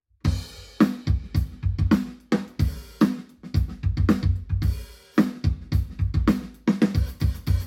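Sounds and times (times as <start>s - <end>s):
drums recorded binaurally: 0.2s - 7.6s.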